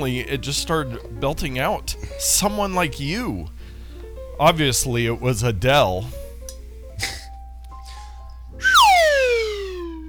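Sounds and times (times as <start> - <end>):
speech: 0.0 - 3.6, 4.4 - 6.2
slide whistle descending: 8.6 - 10.0.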